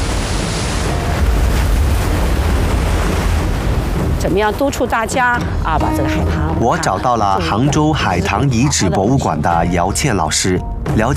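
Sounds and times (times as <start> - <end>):
Qiantang River tide waves crashing against the shore: 0.0 - 8.8
speech: 4.2 - 11.1.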